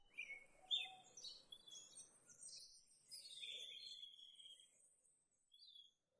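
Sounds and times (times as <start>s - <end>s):
birds: 0.1s - 4.9s.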